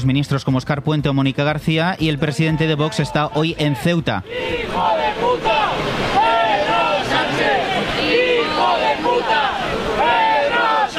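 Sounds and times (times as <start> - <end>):
speech: 0.0 - 6.3
crowd booing: 2.4 - 10.9
large crowd chanting: 4.2 - 10.9.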